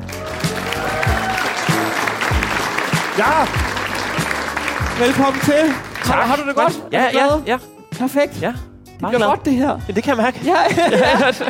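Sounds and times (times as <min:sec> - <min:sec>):
audience applause welcoming a guest onto a show: 0:00.0 - 0:06.6
speech: 0:03.2 - 0:03.7, 0:05.0 - 0:11.4
laughter: 0:10.5 - 0:11.4.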